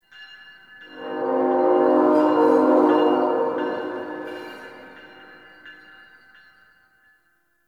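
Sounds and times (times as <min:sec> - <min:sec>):
distant train: 0:00.9 - 0:05.6.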